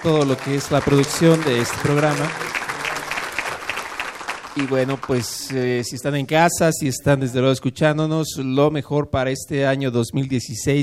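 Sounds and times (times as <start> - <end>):
speech: 0.0 - 2.6, 4.6 - 10.8
audience applause: 0.0 - 5.7.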